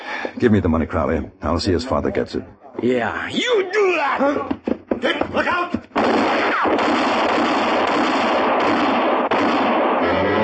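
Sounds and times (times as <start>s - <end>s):
speech: 0.4s - 8.2s
gunshots exchanged: 5.0s - 10.4s.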